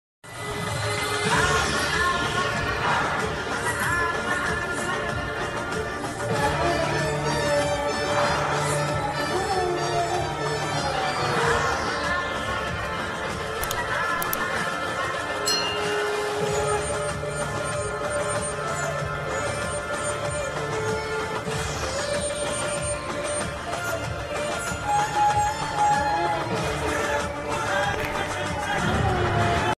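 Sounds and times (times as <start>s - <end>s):
movie interval background music ringtone: 0.4s - 29.7s.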